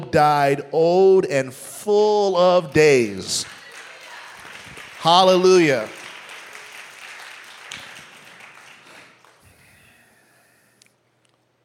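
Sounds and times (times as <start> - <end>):
speech: 0.1 - 3.6, 5.0 - 6.0
audience clapping: 3.4 - 10.0.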